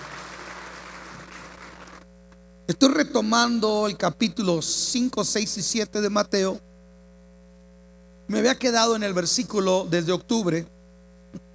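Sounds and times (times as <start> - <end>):
applause for Jesus: 0.0 - 2.1
speech: 2.7 - 6.7, 8.3 - 11.4.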